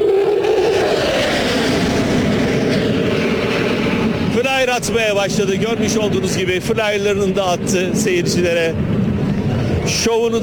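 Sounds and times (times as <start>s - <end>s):
aerobatic plane engine roaring past: 0.0s - 10.4s
speech: 4.8s - 9.0s, 9.9s - 10.4s.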